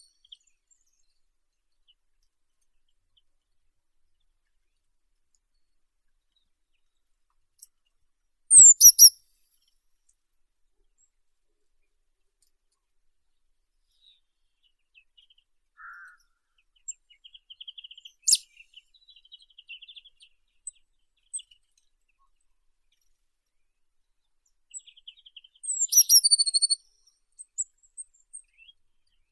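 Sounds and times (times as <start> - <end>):
blue tit Cyanistes caeruleus: 8.5 - 9.2, 15.8 - 16.2, 16.8 - 21.6, 24.7 - 28.8.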